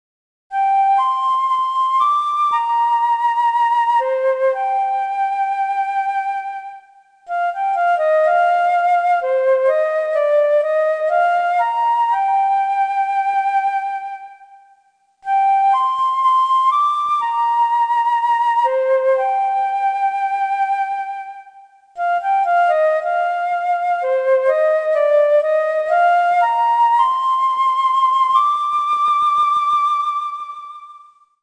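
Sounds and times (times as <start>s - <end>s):
flute: 0.5s - 31.4s.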